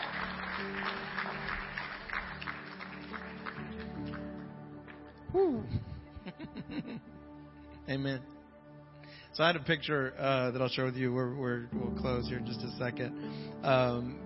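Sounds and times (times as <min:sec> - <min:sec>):
audience clapping hands: 0:00.0 - 0:05.3
speech: 0:05.4 - 0:07.2, 0:07.9 - 0:08.4, 0:09.4 - 0:14.2
laughter: 0:05.6 - 0:07.1.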